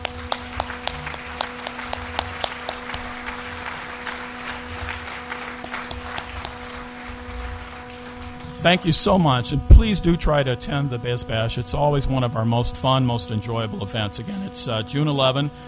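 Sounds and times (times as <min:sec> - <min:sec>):
audience applause: 0:00.0 - 0:09.3
low electrical hum in the room: 0:00.0 - 0:15.6
speech: 0:08.6 - 0:15.6.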